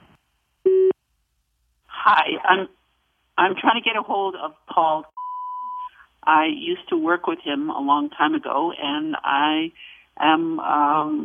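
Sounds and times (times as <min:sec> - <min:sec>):
speech: 0:02.1 - 0:02.8, 0:03.4 - 0:05.2, 0:06.2 - 0:11.2
answering machine beep: 0:05.2 - 0:05.9.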